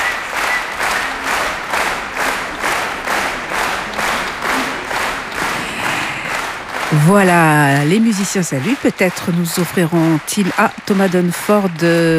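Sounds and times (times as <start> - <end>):
concert audience applause at the Aix-en-Provence Easter Festival: 0.0 - 12.1
speech: 6.9 - 12.1.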